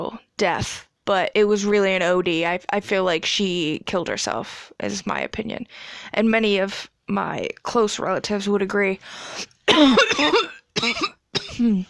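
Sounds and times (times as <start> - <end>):
speech: 0.0 - 11.8
person coughing from smoking a harsh dry blunt: 9.7 - 11.8.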